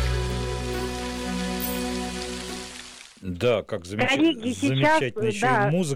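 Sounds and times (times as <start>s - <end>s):
low sustained musical drone: 0.0s - 2.9s
fountain water jets splashing: 0.0s - 3.2s
speech: 3.2s - 5.9s.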